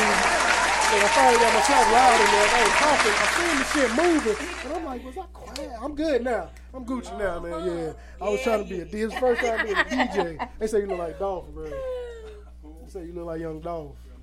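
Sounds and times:
clapping: 0.0s - 4.8s
laughter: 0.0s - 5.0s, 7.2s - 12.6s
speech: 0.9s - 12.1s, 12.9s - 14.0s.

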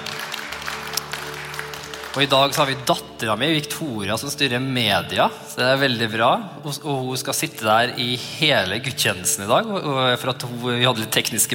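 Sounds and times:
audience applause: 0.0s - 2.9s
speech: 2.1s - 11.5s.

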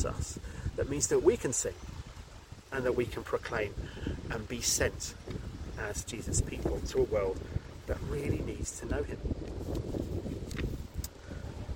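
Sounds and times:
speech: 0.0s - 2.0s, 2.7s - 10.0s
outdoor wind noise buffeting a microphone set close to a wall on a breezy day: 0.0s - 11.7s.

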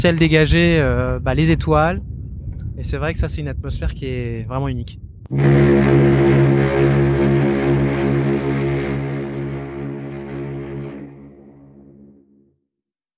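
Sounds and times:
speech: 0.0s - 2.1s, 2.8s - 7.5s
large cruise ship horn: 5.3s - 12.5s.

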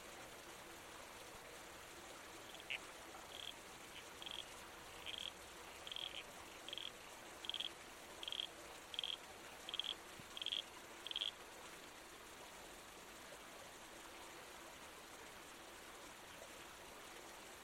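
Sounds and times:
running water hiss: 0.0s - 17.6s
red-crowned toadlet squelchy calls: 2.5s - 11.3s.

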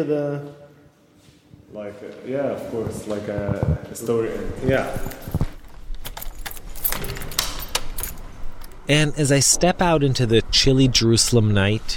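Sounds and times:
speech: 0.0s - 0.6s, 1.7s - 5.4s, 8.9s - 11.9s
keys jangling while locking a door: 4.6s - 8.8s
door being locked: 6.0s - 8.8s.

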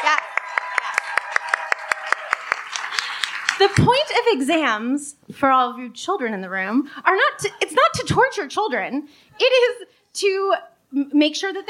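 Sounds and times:
audience applause: 0.0s - 4.1s
speech: 3.6s - 11.6s.

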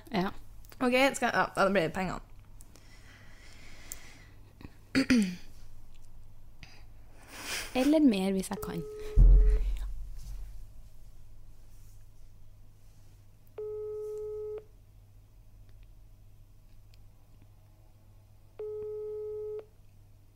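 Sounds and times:
low hum: 0.0s - 20.3s
speech: 0.8s - 2.3s, 5.0s - 5.4s, 7.7s - 9.3s
unanswered phone call ringback tone: 8.6s - 9.6s, 13.6s - 14.7s, 18.6s - 19.7s.

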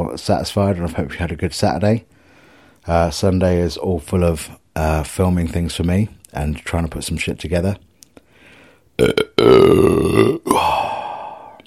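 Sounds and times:
speech: 0.0s - 2.2s, 2.8s - 7.9s, 9.0s - 10.9s
burp after a fizzy drink: 9.0s - 11.6s.

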